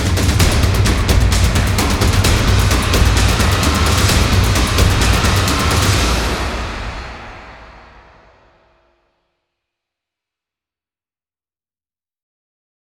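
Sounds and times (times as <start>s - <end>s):
percussion: 0.0s - 8.8s.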